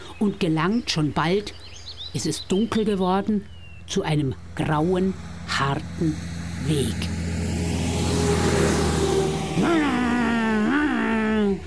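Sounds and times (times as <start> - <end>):
speech: 0.2 - 7.2
car engine accelerating: 3.8 - 11.6.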